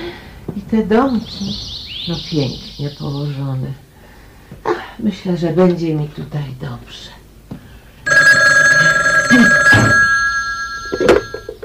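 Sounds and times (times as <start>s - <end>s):
speech: 0.7s - 3.8s, 4.6s - 7.2s
clattering knocks: 8.1s - 11.6s
telephone ringing: 8.1s - 11.6s.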